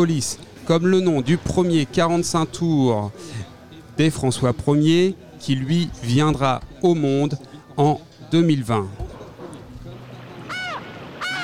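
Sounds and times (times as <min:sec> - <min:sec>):
speech: 0:00.0 - 0:09.0
seagulls crying in the harbour of Le Havre: 0:10.3 - 0:11.4.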